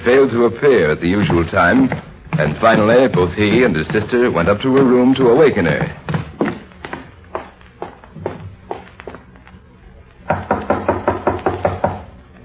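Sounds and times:
speech: 0:00.0 - 0:06.0
knocking on a bedroom door: 0:10.3 - 0:12.1.

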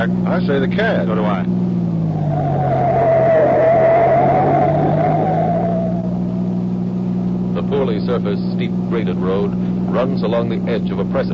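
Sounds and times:
speech: 0:00.0 - 0:01.8, 0:07.7 - 0:11.3
car engine roaring: 0:00.0 - 0:11.3
tires skidding on gravel road: 0:02.0 - 0:06.7.

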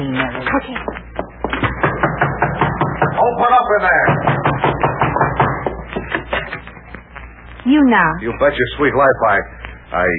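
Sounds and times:
speech: 0:00.5 - 0:00.9, 0:03.7 - 0:04.3, 0:07.7 - 0:10.1
knuckles knocking on a door: 0:00.6 - 0:06.4.

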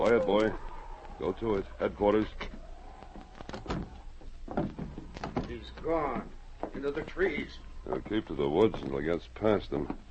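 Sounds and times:
speech: 0:00.0 - 0:02.6, 0:05.6 - 0:10.1
door opening: 0:02.4 - 0:07.1.

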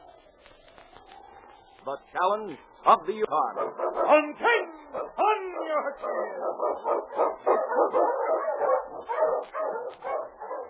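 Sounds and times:
speech: 0:01.8 - 0:04.6, 0:05.8 - 0:10.2
Eskimo sled lead dog barking and yelping: 0:03.5 - 0:10.6.

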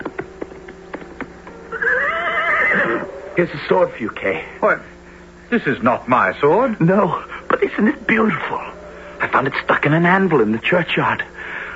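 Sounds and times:
galloping horse hoofbeats: 0:00.0 - 0:03.1
horse neighing: 0:01.7 - 0:03.2
speech: 0:03.4 - 0:11.6.

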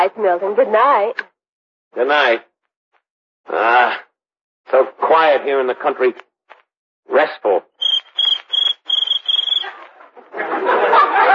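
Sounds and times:
speech: 0:00.0 - 0:01.2, 0:01.9 - 0:02.5, 0:03.4 - 0:04.0, 0:04.7 - 0:06.3, 0:07.1 - 0:07.7
cricket chirping: 0:07.8 - 0:09.8
laughter: 0:09.6 - 0:11.3.

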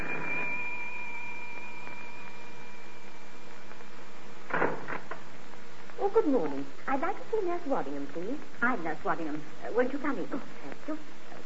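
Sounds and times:
front door bell ringing: 0:00.0 - 0:03.9
speech: 0:06.1 - 0:11.2.

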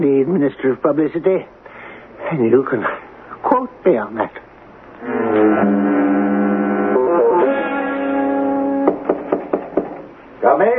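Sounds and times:
speech: 0:00.0 - 0:01.7, 0:02.3 - 0:06.3, 0:10.4 - 0:10.7
long droning horn-like musical tone: 0:05.0 - 0:09.0
sharp knocks on a door: 0:08.8 - 0:10.1.

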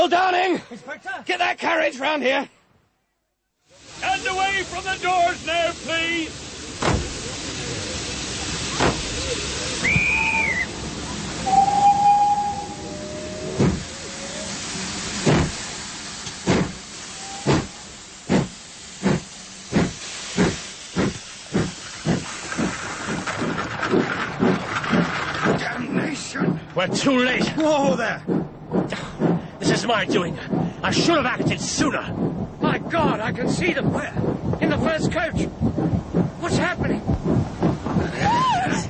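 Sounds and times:
speech: 0:00.0 - 0:02.6, 0:04.0 - 0:07.0, 0:26.8 - 0:29.1, 0:29.8 - 0:37.4
steam locomotive hissing at station: 0:03.7 - 0:38.8
steam locomotive whistle tones: 0:11.4 - 0:14.2, 0:17.1 - 0:17.7.

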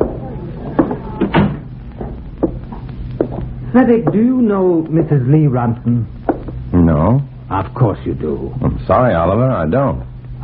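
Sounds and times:
door shutting: 0:00.0 - 0:02.2
speech: 0:03.7 - 0:10.4.

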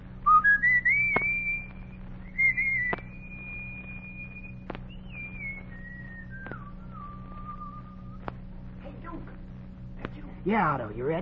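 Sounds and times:
low steady hum: 0:00.0 - 0:11.2
boy whistling a tune: 0:00.3 - 0:01.7, 0:02.3 - 0:08.1
sharp clicks: 0:02.7 - 0:06.8, 0:08.2 - 0:08.5
speech: 0:10.5 - 0:11.2.

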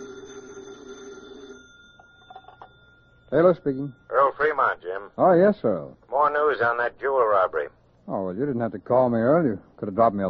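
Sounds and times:
telephone bell ringing: 0:00.0 - 0:04.8
faint room noise: 0:00.0 - 0:10.2
speech: 0:03.3 - 0:10.2.

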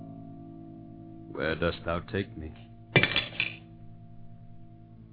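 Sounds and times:
speech: 0:01.4 - 0:02.7
silver dish dropped and clattering: 0:03.0 - 0:03.6.

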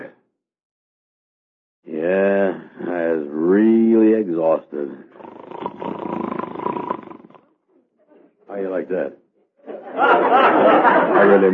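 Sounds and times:
speech: 0:03.2 - 0:06.7, 0:08.9 - 0:09.2, 0:10.0 - 0:11.5
snoring: 0:04.8 - 0:07.4
laughter: 0:09.6 - 0:11.5.

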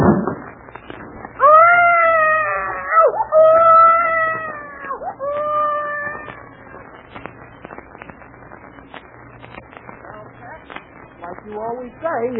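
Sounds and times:
baby crying: 0:01.4 - 0:06.4.

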